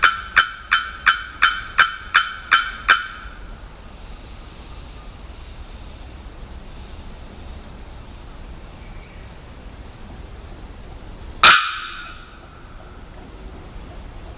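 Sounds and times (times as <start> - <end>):
Bearded Bellbird calling: 0.0 - 3.5, 11.4 - 14.3.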